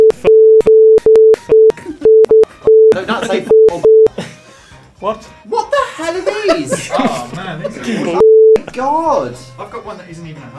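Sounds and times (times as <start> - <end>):
censor bleep tone: 0.0 - 4.1, 8.2 - 8.7
laughter: 2.9 - 4.7, 5.5 - 9.8
speech: 3.1 - 3.5, 5.0 - 5.4, 7.5 - 8.2, 8.8 - 10.5
talk: 6.1 - 10.5.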